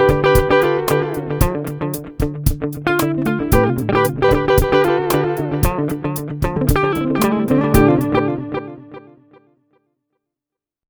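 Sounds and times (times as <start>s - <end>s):
pop rhythm with tempo delay: 0.0s - 8.2s.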